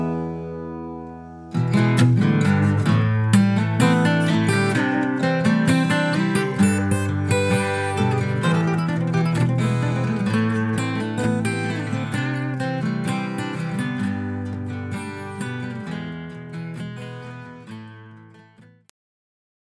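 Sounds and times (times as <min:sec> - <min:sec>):
solo acoustic guitar cover: 0:00.0 - 0:18.9.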